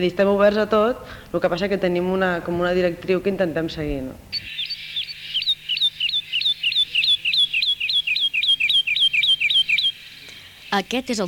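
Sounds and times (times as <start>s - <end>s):
speech: 0.0s - 4.6s, 10.7s - 11.2s
bird calls: 4.3s - 11.2s.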